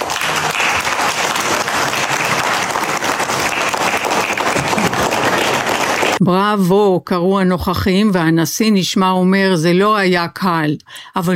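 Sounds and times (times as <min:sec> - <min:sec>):
applause at a formal dinner: 0:00.0 - 0:06.2
speech: 0:06.2 - 0:11.3.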